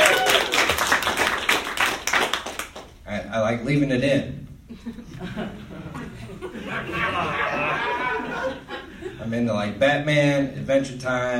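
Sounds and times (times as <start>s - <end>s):
audience clapping: 0.0s - 3.0s
speech: 3.4s - 11.3s
laughter: 4.7s - 9.3s.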